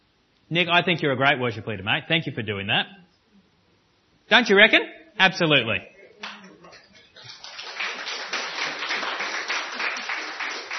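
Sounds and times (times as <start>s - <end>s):
speech: 0.5s - 3.0s, 4.3s - 6.3s
audience clapping: 6.2s - 10.7s.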